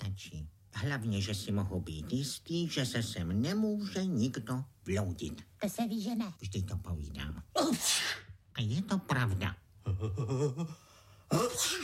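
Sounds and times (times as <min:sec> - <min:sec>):
speech: 0:00.2 - 0:11.8
person sneezing: 0:07.6 - 0:08.3, 0:11.3 - 0:11.8.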